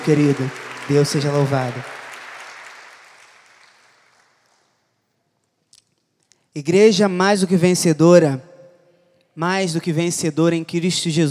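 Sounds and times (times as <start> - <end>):
speech: 0.0 - 2.0, 6.6 - 8.5, 9.4 - 11.3
audience applause: 0.0 - 4.7.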